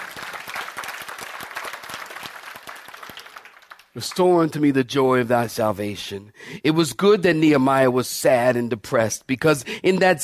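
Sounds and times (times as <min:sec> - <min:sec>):
audience clapping hands: 0:00.0 - 0:04.6
speech: 0:04.0 - 0:10.2.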